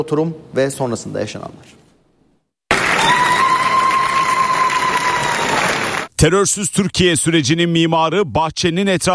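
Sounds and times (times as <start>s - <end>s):
speech: 0.0s - 1.8s, 6.2s - 9.1s
party members applauding in parliament after a law passes: 2.7s - 6.1s.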